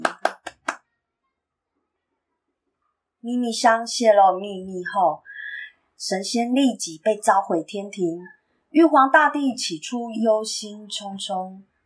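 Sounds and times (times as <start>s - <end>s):
sharp hand claps: 0.0s - 0.8s
speech: 3.2s - 5.3s, 6.0s - 11.7s.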